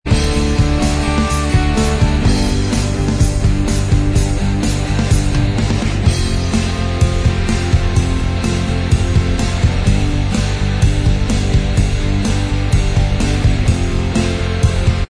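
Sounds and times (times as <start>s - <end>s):
instrumental backing track: 0.1s - 15.0s.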